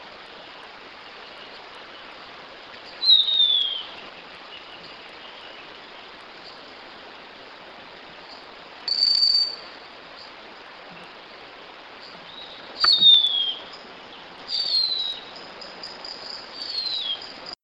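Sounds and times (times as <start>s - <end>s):
background hiss: 0.0s - 17.6s
plumbeous kite whistling calls: 3.0s - 3.9s, 8.9s - 9.7s, 12.4s - 13.8s, 14.5s - 15.3s
sharp click: 12.8s - 13.1s.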